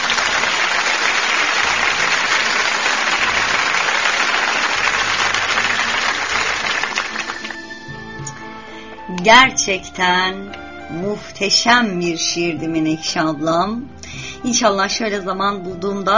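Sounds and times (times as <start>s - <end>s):
applause: 0.0s - 7.9s
speech: 9.2s - 16.1s.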